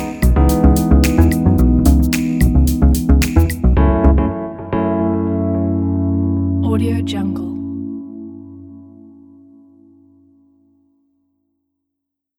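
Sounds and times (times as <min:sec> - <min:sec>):
luxury jazz music: 0:00.0 - 0:07.5.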